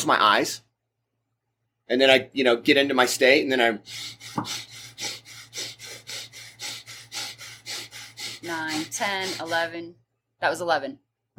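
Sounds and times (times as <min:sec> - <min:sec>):
speech: 0:00.0 - 0:00.7, 0:01.9 - 0:05.7, 0:08.4 - 0:11.3
sharp breathy exhales of a skull-breath breathing exercise: 0:03.8 - 0:09.7.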